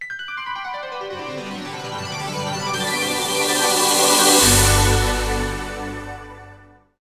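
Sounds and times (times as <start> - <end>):
techno music: 0.9 - 6.7.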